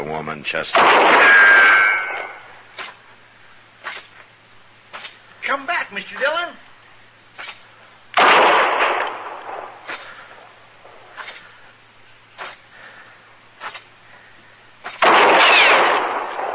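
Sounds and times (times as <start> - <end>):
speech: 0.1 - 1.6, 5.5 - 6.6
gunshots fired at a marshal: 0.7 - 3.0, 8.2 - 10.2, 14.8 - 16.5.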